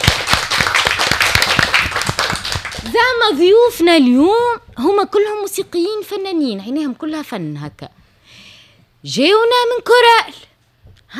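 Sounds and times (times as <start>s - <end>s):
audience clapping in a steady rhythmic beat: 0.0s - 3.3s
speech: 3.2s - 8.0s, 9.0s - 10.5s.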